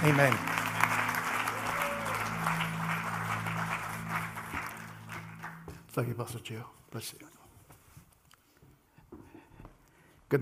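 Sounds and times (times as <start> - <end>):
speech: 0.0 - 0.5, 6.0 - 7.3, 10.3 - 10.4
audience applauding a guest preacher: 0.0 - 5.9.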